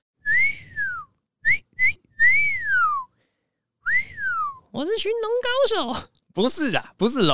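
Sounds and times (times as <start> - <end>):
person whistling an imitation of a nightingale's song: 0.2 - 3.2, 3.8 - 4.7
speech: 4.7 - 7.3.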